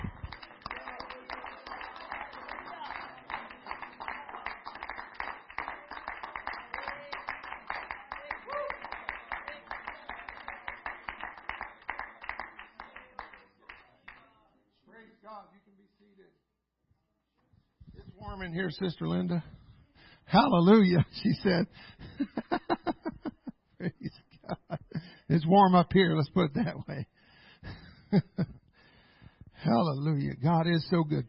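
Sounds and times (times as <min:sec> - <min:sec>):
audience clapping hands: 0:00.0 - 0:14.3
speech: 0:18.2 - 0:19.5, 0:20.3 - 0:22.4, 0:25.3 - 0:27.0, 0:29.7 - 0:31.2
laughter: 0:20.7 - 0:25.2, 0:26.6 - 0:28.6.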